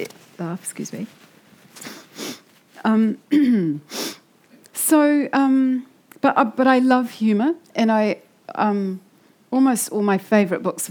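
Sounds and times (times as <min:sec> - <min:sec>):
speech: 0:00.0 - 0:04.0, 0:04.9 - 0:10.9
person sniffing while reaching for a tissue: 0:01.8 - 0:02.5, 0:03.9 - 0:04.2.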